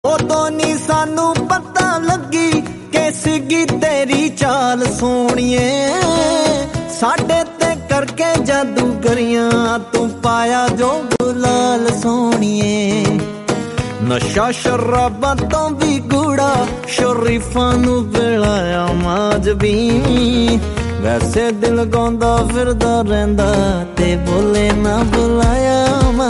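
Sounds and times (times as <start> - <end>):
romantic Punjabi music: 0.0 - 26.2.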